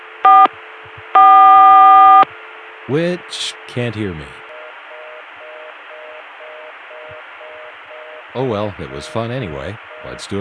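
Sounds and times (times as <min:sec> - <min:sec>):
faint low telephone line hum: 0:00.0 - 0:10.3
Atlanta CCSA telephone dial tone via a Columbia PBX: 0:00.2 - 0:00.5, 0:01.2 - 0:02.2
speech: 0:02.9 - 0:04.4, 0:08.4 - 0:10.3.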